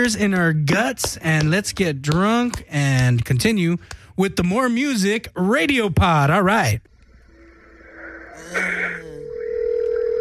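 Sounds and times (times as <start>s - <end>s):
speech: 0.0s - 6.9s, 8.4s - 9.1s
chirpy telephone tones of a radio show caller: 9.2s - 10.1s.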